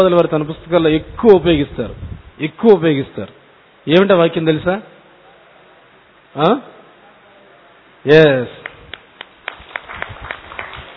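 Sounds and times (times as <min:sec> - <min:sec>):
speech: 0:00.0 - 0:04.9, 0:06.4 - 0:06.8, 0:08.0 - 0:08.7
audience clapping at a spiritual lecture: 0:08.6 - 0:10.9.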